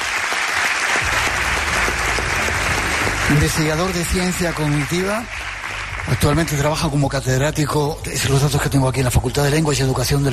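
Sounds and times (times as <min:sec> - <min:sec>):
audience applause: 0:00.0 - 0:07.5
speech: 0:03.3 - 0:05.4, 0:06.1 - 0:10.3.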